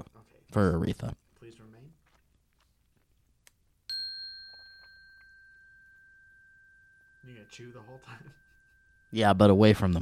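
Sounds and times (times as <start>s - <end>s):
speech: 0.5s - 1.2s, 7.5s - 8.4s, 9.1s - 10.0s
soft chime: 3.9s - 10.0s.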